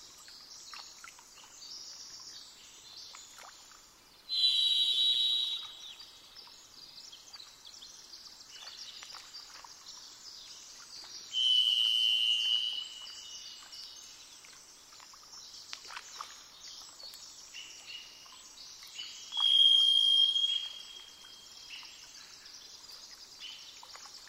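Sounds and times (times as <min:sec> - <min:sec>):
varied thrush song: 0:04.3 - 0:05.9, 0:11.3 - 0:13.2, 0:19.3 - 0:21.2.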